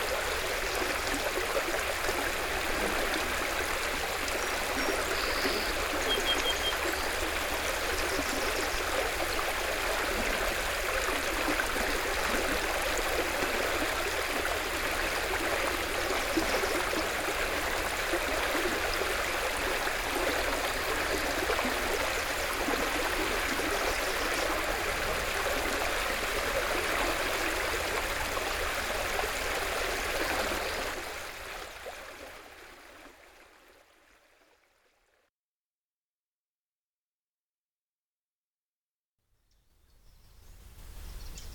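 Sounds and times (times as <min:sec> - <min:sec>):
water: 0:00.0 - 0:35.3
birds: 0:04.8 - 0:07.2, 0:39.5 - 0:41.5.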